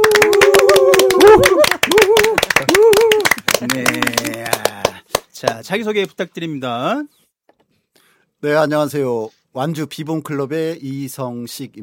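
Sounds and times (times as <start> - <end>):
group clapping on a count of three: 0.0 - 5.8
speech: 5.4 - 7.2, 8.4 - 11.8.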